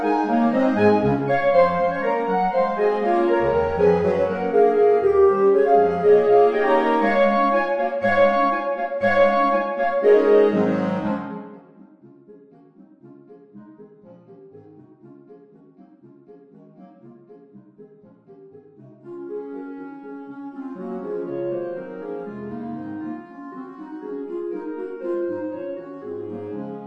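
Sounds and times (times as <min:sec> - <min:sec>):
clarinet ensemble playing: 0:00.0 - 0:11.8, 0:19.0 - 0:26.8.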